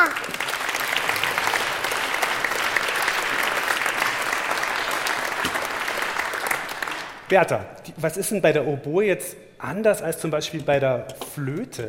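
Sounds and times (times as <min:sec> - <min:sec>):
audience applause: 0:00.0 - 0:07.3
speech: 0:07.3 - 0:11.8.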